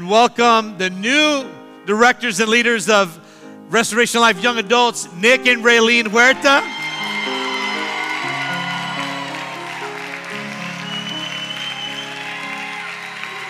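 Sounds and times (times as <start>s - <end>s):
speech: 0.0s - 6.8s
audience clapping and cheering: 6.6s - 13.4s.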